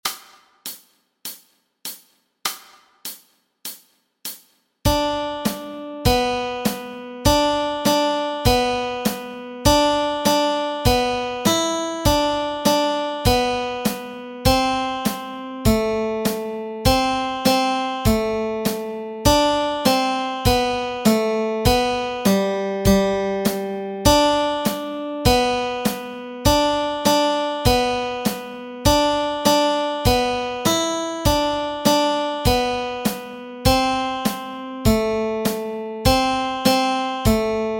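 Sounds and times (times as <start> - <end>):
nursery rhyme melody: 4.9 - 37.7.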